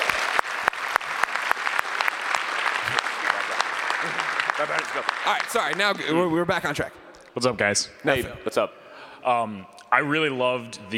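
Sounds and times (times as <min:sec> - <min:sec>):
audience applause: 0:00.0 - 0:06.3
speech: 0:04.6 - 0:10.9.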